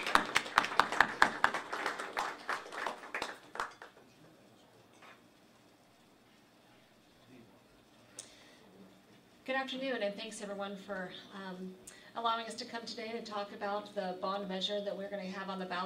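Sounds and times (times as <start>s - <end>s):
small crowd clapping for a speaker: 0.0s - 4.4s
speech: 9.6s - 15.8s.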